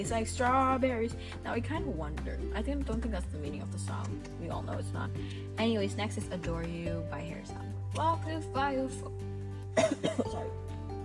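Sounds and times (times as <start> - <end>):
speech: 0.0 - 9.2, 9.8 - 10.7
person coughing after choking: 9.8 - 10.5.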